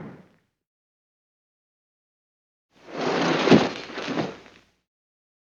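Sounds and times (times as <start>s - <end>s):
body falling: 3.0s - 4.4s.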